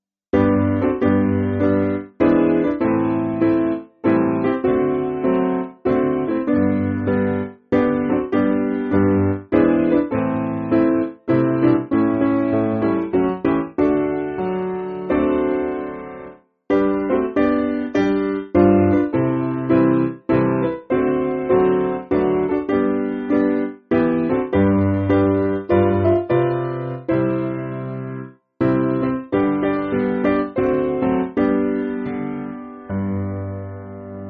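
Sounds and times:
piano hymn: 0.4 - 34.2.

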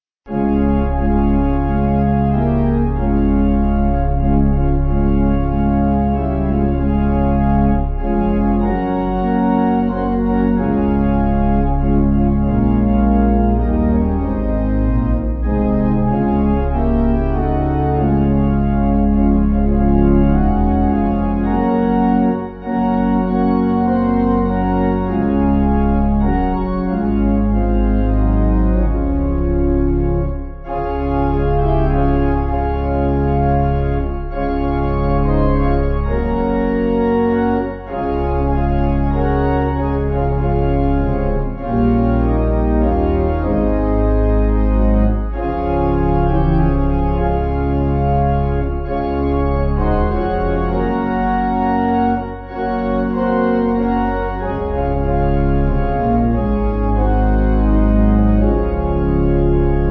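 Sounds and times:
pipe organ music backing: 0.3 - 59.9.

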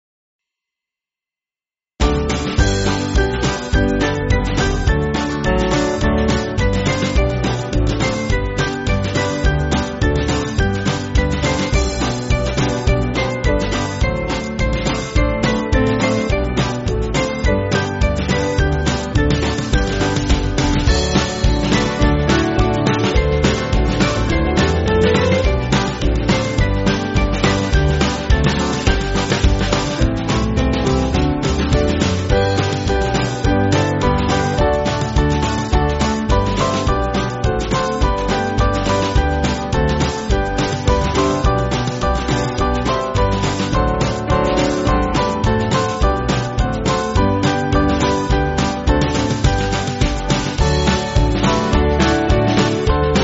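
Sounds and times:
band backing track for churches: 2.0 - 53.2.

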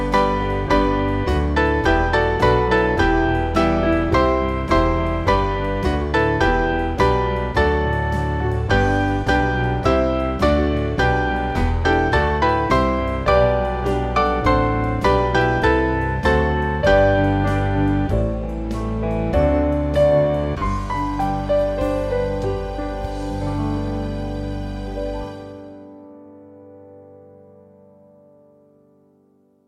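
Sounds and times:
piano hymn tune: 0.0 - 29.6.

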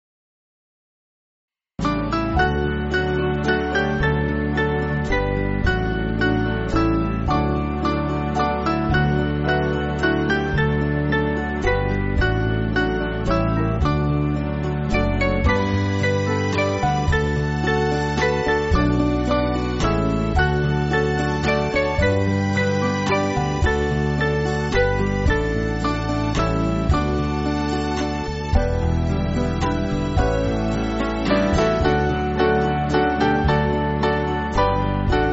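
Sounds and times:
band backing track for churches: 1.8 - 35.3.

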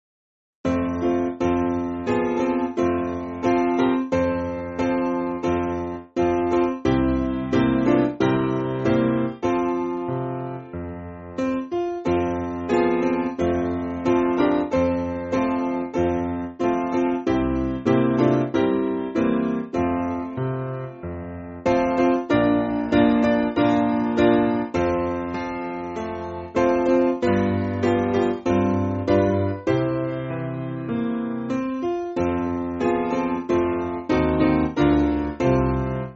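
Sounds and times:
piano backing music for churches: 0.7 - 36.1.

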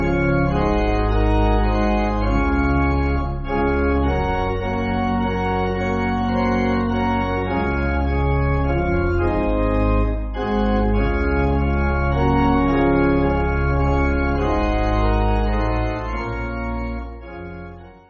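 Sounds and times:
pipe organ backing music for churches: 0.0 - 18.0.

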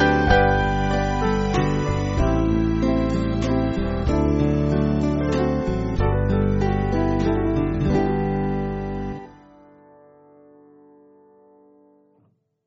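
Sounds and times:
band backing music: 0.0 - 9.2.

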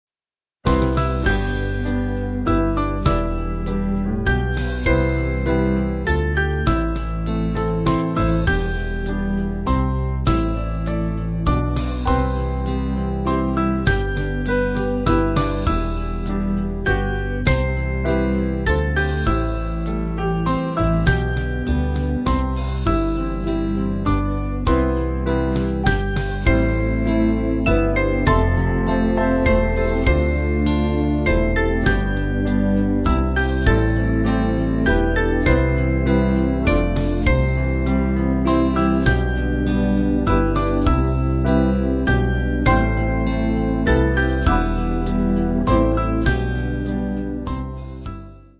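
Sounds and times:
church band backing music: 0.8 - 48.0.

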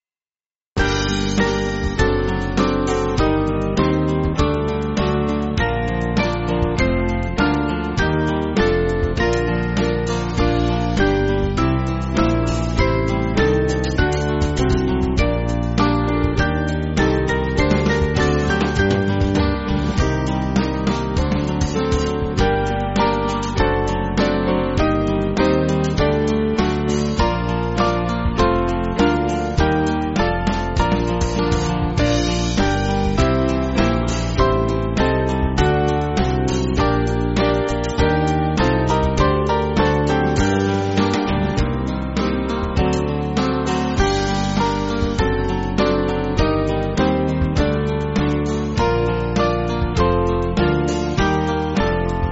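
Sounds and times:
band playing: 0.8 - 52.3.

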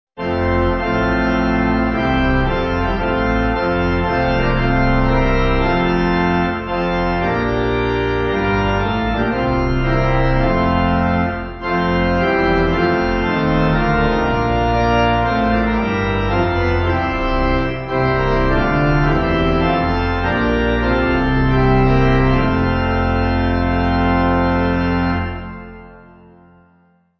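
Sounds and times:
pipe organ backing: 0.2 - 26.9.

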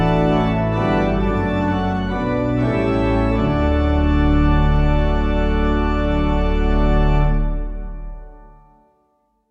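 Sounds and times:
band playing: 0.0 - 7.4
pipe organ: 0.0 - 8.9
piano: 0.0 - 9.4.

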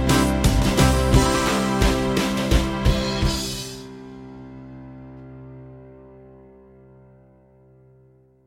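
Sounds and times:
band playing: 0.0 - 4.6.

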